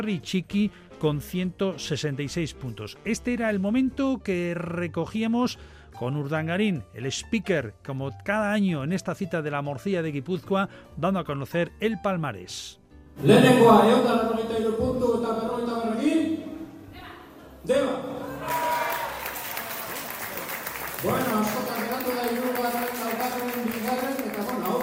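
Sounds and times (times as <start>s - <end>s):
speech: 0.0s - 16.4s, 17.6s - 18.6s
audience applauding at award announcement: 18.4s - 24.8s.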